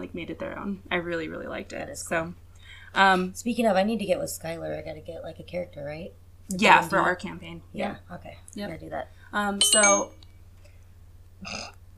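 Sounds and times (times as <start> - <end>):
speech: 0.0 - 10.2, 11.4 - 11.8
low steady hum: 0.0 - 11.9
phone notification tone: 9.6 - 10.1.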